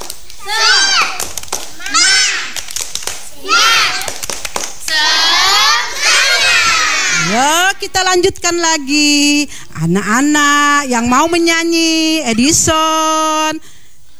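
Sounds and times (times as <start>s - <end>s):
children performing a clapping chant: 0.0s - 7.9s
rhythmic hand claps: 0.0s - 8.6s
speech: 7.9s - 13.7s.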